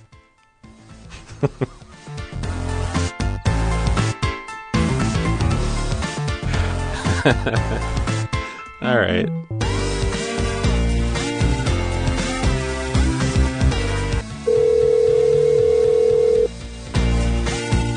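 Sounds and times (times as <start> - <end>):
busy music: 0.0 - 17.9
laughter: 1.1 - 1.9, 6.9 - 8.0
speech: 1.4 - 1.8, 7.2 - 8.0, 8.8 - 9.4
phone ringing out to a woman's phone: 14.5 - 16.5.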